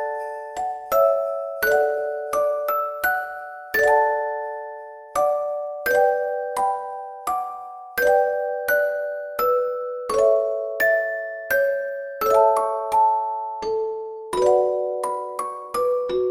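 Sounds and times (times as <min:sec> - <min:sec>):
dreamy Christmas music: 0:00.0 - 0:16.2.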